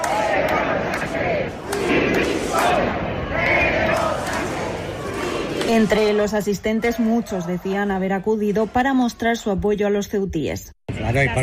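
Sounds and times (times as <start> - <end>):
crowd shouting demanding resignation: 0.0 - 8.6
speech: 5.7 - 11.4.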